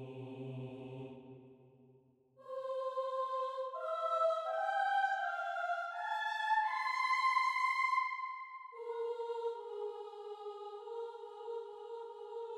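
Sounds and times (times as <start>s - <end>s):
choir singing: 0.0s - 1.4s, 2.4s - 12.5s.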